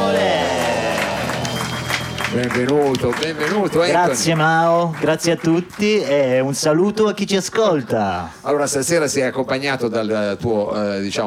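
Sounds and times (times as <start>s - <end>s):
audience applause: 0.0s - 6.5s
speech: 2.3s - 11.2s.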